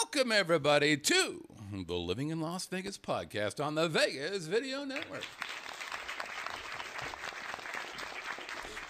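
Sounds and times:
speech: 0.1s - 5.5s
audience applause: 4.9s - 8.8s.

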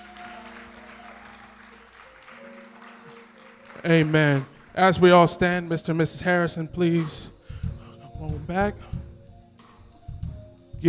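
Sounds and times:
audience hand clapping applause: 0.0s - 5.7s
speech: 3.8s - 7.3s, 8.4s - 9.0s.

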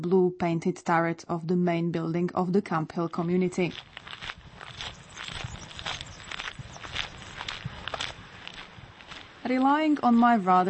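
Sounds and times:
speech: 0.0s - 4.4s, 9.5s - 10.6s
footsteps walking down a road through muddy fields: 3.3s - 10.6s.

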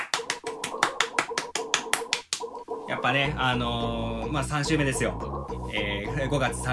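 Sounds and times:
one person clapping hands: 0.0s - 2.6s
speech: 2.9s - 6.7s.

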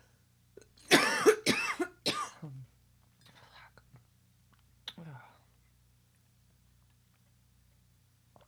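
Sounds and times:
harsh chesty coughing after a drink went down the wrong way: 0.9s - 2.5s.

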